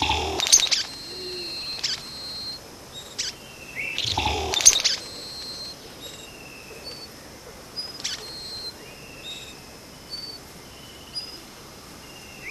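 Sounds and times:
Vogelkop bowerbird loud short sharp note: 0:00.0 - 0:01.6, 0:04.0 - 0:05.6.

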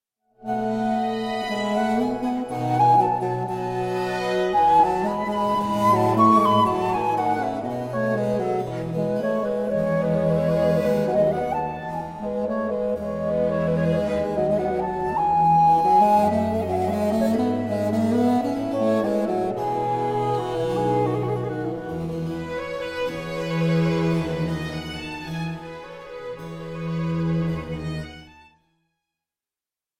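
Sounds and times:
flute concerto in G minor: 0:00.4 - 0:27.8.

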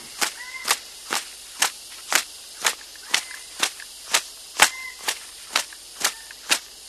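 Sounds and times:
Raggiana bird-of-paradise giving a harsh nasal honking call: 0:00.2 - 0:00.9, 0:03.0 - 0:03.6, 0:04.5 - 0:05.2, 0:05.9 - 0:06.5.

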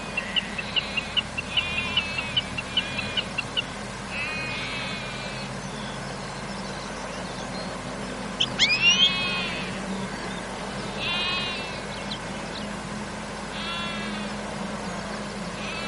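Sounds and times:
European goldfinch calls: 0:00.0 - 0:12.7, 0:13.6 - 0:15.8.

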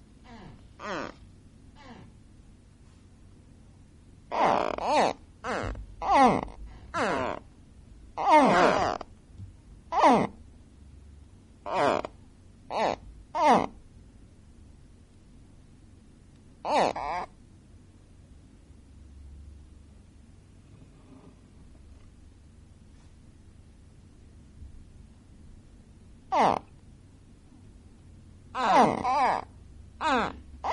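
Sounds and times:
gharial calls: 0:00.8 - 0:01.2, 0:04.3 - 0:07.4, 0:08.2 - 0:09.0, 0:12.7 - 0:13.8, 0:16.6 - 0:17.3, 0:26.3 - 0:26.7, 0:28.6 - 0:30.7.

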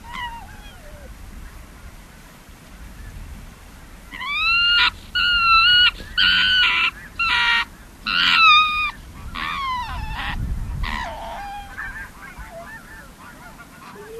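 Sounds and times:
Arctic fox giving harsh harmonic yelps: 0:00.0 - 0:01.1, 0:04.1 - 0:14.1.

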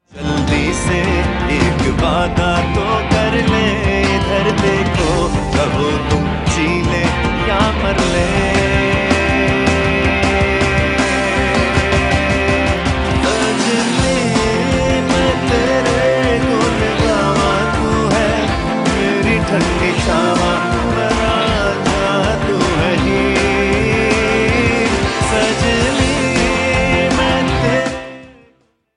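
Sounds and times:
strings: 0:00.1 - 0:28.2.

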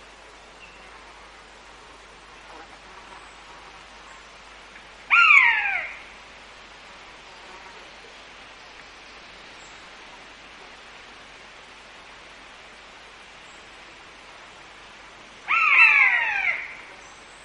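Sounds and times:
common buzzard mewing: 0:05.1 - 0:06.0, 0:15.5 - 0:16.9.

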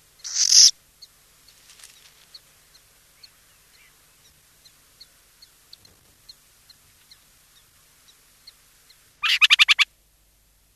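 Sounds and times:
burrowing owl giving harsh hissing rasps: 0:00.2 - 0:00.7, 0:09.2 - 0:09.9.

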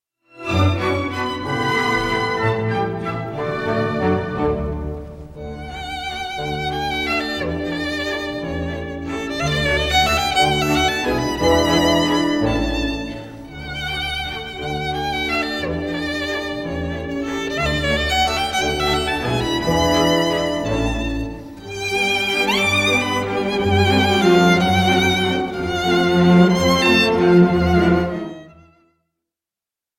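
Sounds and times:
waltz for violin and orchestra: 0:00.3 - 0:28.9.

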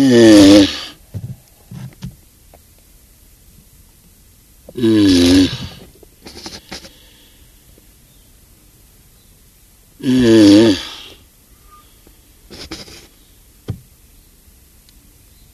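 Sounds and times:
Galapagos tortoise groaning call: 0:00.0 - 0:01.0, 0:04.7 - 0:07.1, 0:10.0 - 0:13.2.

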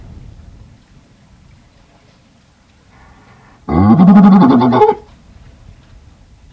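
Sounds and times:
Galapagos fur seal grunting and barking: 0:03.0 - 0:05.1.

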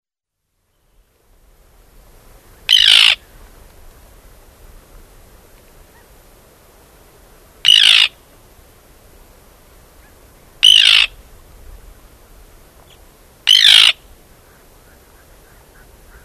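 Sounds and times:
Arctic tern uttering kip notes, screeches and ticking notes: 0:02.7 - 0:03.2, 0:07.6 - 0:08.2, 0:10.0 - 0:11.2, 0:12.9 - 0:16.2.

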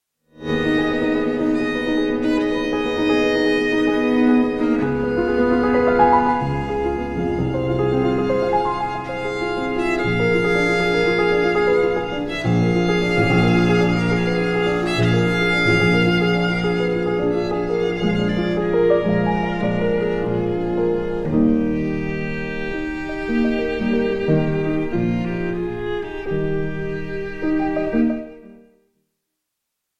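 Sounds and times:
piano and strings trio in E flat major: 0:00.4 - 0:28.8.

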